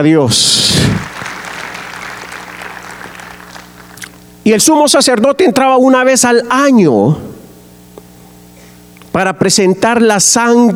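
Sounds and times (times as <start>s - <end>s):
speech: 0.0s - 1.1s, 4.4s - 7.4s, 9.2s - 10.7s
audience applauding: 0.8s - 4.4s.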